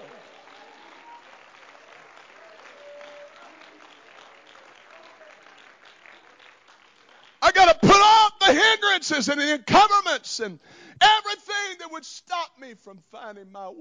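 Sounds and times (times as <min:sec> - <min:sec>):
audience clapping: 0:00.0 - 0:07.9
speech: 0:09.0 - 0:11.2, 0:11.8 - 0:13.8.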